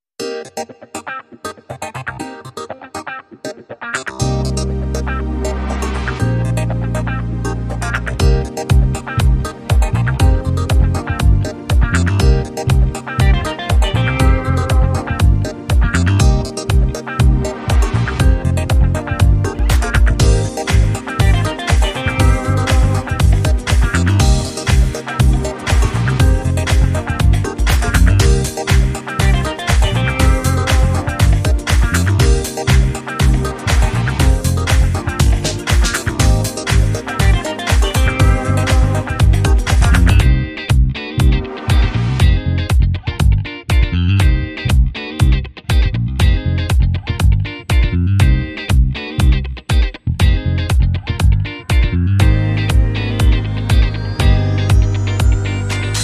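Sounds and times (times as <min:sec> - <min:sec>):
funky music: 0:00.2 - 0:56.0.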